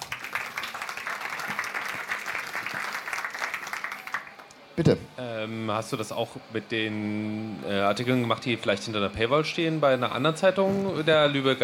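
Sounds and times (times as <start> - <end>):
audience applause: 0.0 - 4.5
speech: 4.8 - 11.6.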